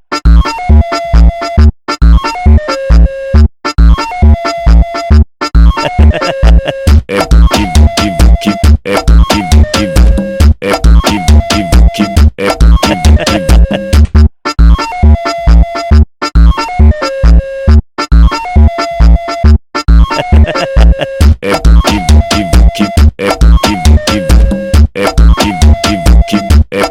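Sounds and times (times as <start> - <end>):
Brazilian funk song: 0.1 - 3.0, 3.6 - 17.3, 18.0 - 26.9
laughter: 5.8 - 9.0, 12.4 - 14.0, 20.1 - 22.1.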